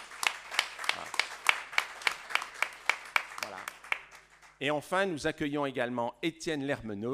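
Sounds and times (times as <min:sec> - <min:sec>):
audience applauding: 0:00.0 - 0:04.6
speech: 0:04.6 - 0:07.1.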